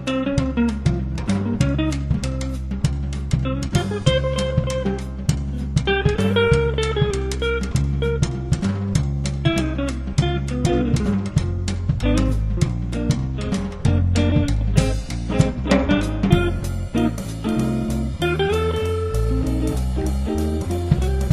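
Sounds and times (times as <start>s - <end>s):
Arabic music trio: 0.0s - 21.3s.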